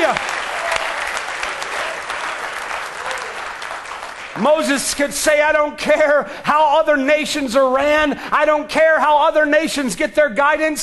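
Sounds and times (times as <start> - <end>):
audience clapping hands in praise: 0.0 - 5.0
speech: 4.4 - 10.8.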